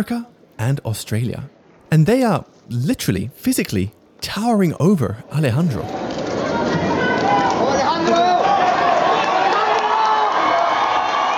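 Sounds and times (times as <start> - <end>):
speech: 0.0 - 6.0, 6.6 - 8.3
audience roar at a contest: 5.9 - 11.3
audience shouting and whooping for a competitor: 5.9 - 11.3.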